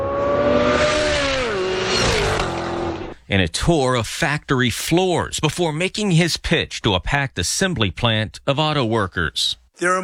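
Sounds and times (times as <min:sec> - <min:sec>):
racing car engine roaring at General Motors proving ground in Milford, Michigan: 0:00.0 - 0:03.2
road and tire noise: 0:00.0 - 0:03.2
speech: 0:03.3 - 0:10.0.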